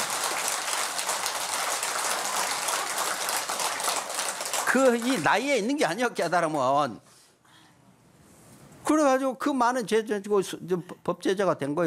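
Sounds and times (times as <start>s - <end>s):
audience applause: 0.0s - 5.6s
speech: 4.7s - 7.1s, 8.9s - 11.8s.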